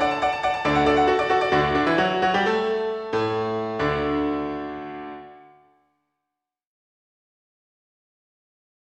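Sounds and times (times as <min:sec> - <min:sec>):
solo piano: 0:00.0 - 0:05.8.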